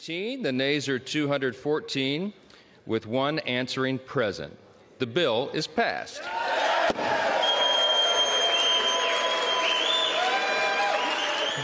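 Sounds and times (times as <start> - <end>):
speech: 0.0 - 6.6
Congress members applauding after a vote: 6.2 - 11.6.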